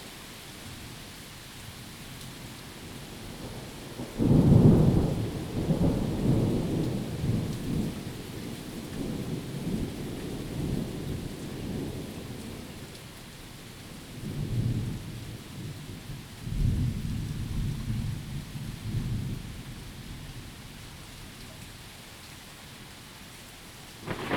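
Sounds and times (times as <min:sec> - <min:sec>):
thunderstorm: 0:03.2 - 0:12.9, 0:14.0 - 0:20.6, 0:24.0 - 0:24.3.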